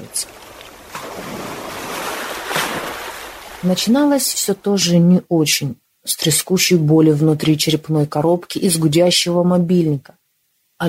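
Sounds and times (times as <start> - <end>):
speech: 0.0 - 0.4, 3.6 - 10.2
ocean waves crashing: 0.0 - 4.2.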